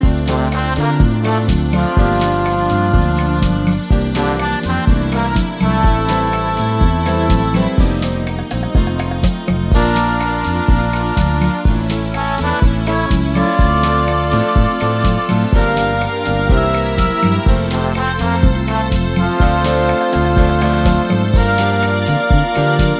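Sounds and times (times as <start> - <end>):
rumba music: 0.0 - 22.9.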